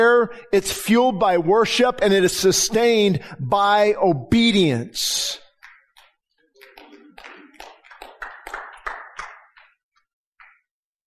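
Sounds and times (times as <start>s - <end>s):
speech: 0.0s - 5.4s
scattered handclaps from a crowd in a large room: 5.5s - 10.8s.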